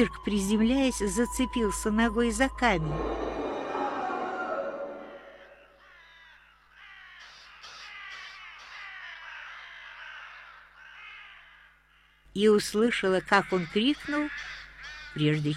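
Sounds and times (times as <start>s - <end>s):
speech: 0.0s - 3.2s, 12.4s - 14.6s, 15.2s - 15.5s
crows cawing: 3.0s - 12.3s, 13.2s - 15.5s.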